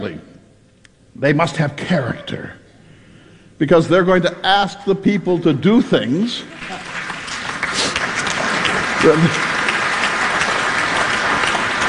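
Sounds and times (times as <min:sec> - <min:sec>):
speech: 0:00.0 - 0:00.3, 0:01.2 - 0:02.6, 0:03.6 - 0:06.9, 0:09.0 - 0:09.5
audience applause at a political speech: 0:06.5 - 0:11.8.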